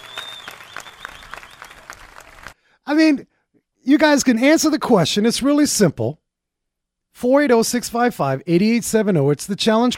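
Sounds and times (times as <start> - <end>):
audience clapping: 0.0 - 2.6, 9.8 - 9.9
speech: 2.9 - 6.2, 7.2 - 9.9.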